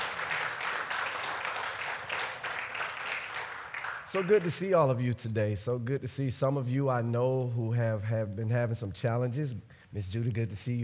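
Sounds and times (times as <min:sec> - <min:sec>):
audience clapping hands: 0:00.0 - 0:04.8
speech: 0:04.1 - 0:10.8.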